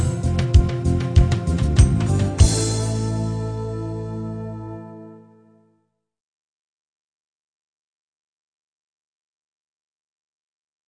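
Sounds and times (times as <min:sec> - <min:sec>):
rock metal full backing band playing long notes: 0:00.0 - 0:04.5.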